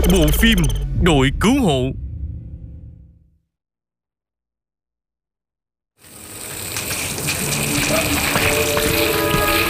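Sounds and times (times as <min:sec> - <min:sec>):
speech: 0:00.1 - 0:02.0
water spraying from a hose to put out smoke: 0:06.0 - 0:09.6.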